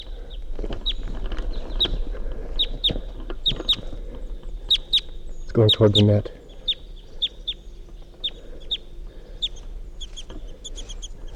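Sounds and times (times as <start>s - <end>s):
steady rumbling noise: 0.0s - 11.3s
wild bird calling in flight: 0.0s - 11.3s
speech: 5.6s - 6.4s.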